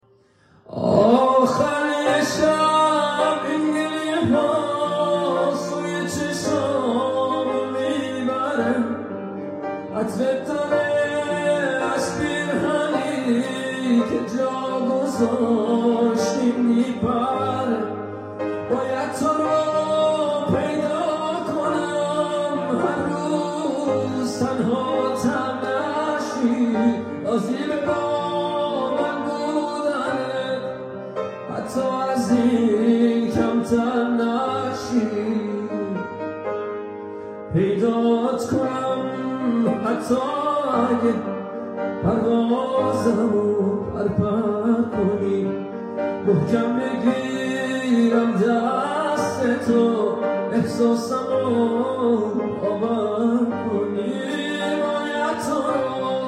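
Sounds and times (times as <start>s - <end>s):
piano: 0.0s - 56.2s.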